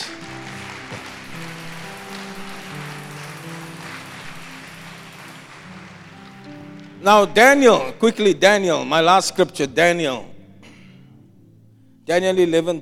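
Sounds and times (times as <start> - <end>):
crowd applause: 0.0 - 7.6
speech: 7.0 - 10.3, 12.1 - 12.8.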